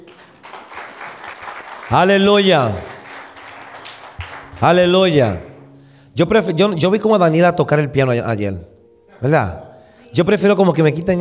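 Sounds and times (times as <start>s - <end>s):
audience applause: 0.0s - 5.6s
speech: 1.9s - 2.9s, 4.6s - 5.5s, 6.2s - 11.2s.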